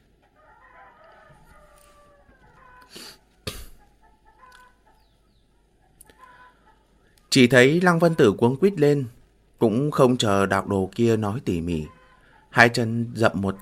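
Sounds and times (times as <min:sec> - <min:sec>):
chickens clucking: 0:00.0 - 0:13.6
rooster crowing: 0:00.2 - 0:05.1, 0:06.0 - 0:06.8, 0:11.7 - 0:12.6, 0:13.3 - 0:13.6
speech: 0:07.3 - 0:13.6.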